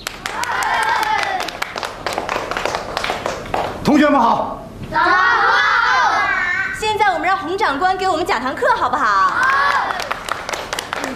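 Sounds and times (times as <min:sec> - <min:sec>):
children clapping in classroom: 0:00.0 - 0:03.8, 0:09.2 - 0:11.1
excited children's voices: 0:00.3 - 0:01.6, 0:04.9 - 0:07.4, 0:08.6 - 0:10.2
speech: 0:04.0 - 0:05.3, 0:07.4 - 0:09.7.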